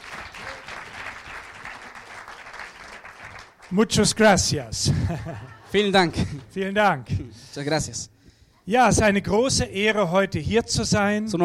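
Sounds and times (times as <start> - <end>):
audience applause greeting preacher: 0.0 - 3.8
speech: 3.7 - 8.1, 8.7 - 11.4
laughter: 4.8 - 6.6.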